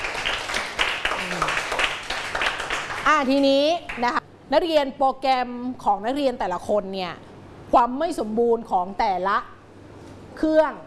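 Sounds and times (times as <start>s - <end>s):
students clapping for classmate: 0.0s - 3.3s
speech: 3.1s - 9.6s, 10.4s - 10.8s.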